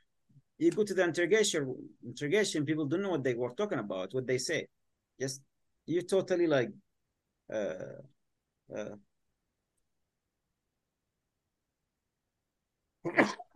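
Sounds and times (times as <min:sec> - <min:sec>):
speech: 0:00.6 - 0:06.8, 0:07.5 - 0:09.1, 0:13.0 - 0:13.5
person sneezing: 0:13.1 - 0:13.5
short voiced sounds: 0:13.1 - 0:13.5.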